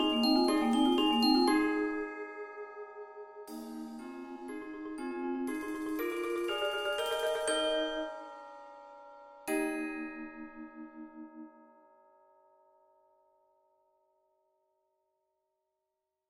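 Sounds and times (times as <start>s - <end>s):
xylophone in a percussion ensemble: 0.0s - 2.2s, 3.5s - 10.6s
2 marimbas in a percussion ensemble: 0.0s - 2.4s, 3.5s - 11.2s
vibraphone in a percussion ensemble: 0.0s - 2.4s, 3.5s - 11.5s
bells in a percussion ensemble: 0.0s - 13.1s
chimes in a percussion ensemble: 0.0s - 13.6s.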